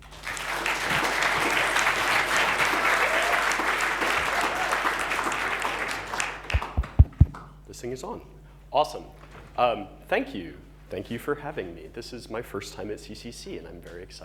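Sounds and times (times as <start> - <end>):
audience applause: 0.0 - 7.4
speech: 7.9 - 14.2.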